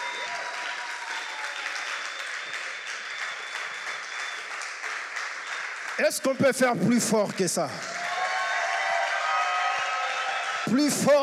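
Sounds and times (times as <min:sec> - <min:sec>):
audience cheering and applauding: 0:00.0 - 0:11.2
speech: 0:06.0 - 0:08.0, 0:10.7 - 0:11.2.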